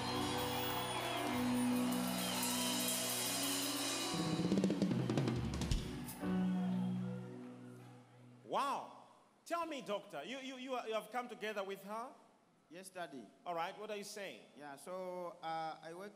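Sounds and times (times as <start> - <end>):
audience clapping hands: 0.0 - 7.9
speech: 8.6 - 16.1.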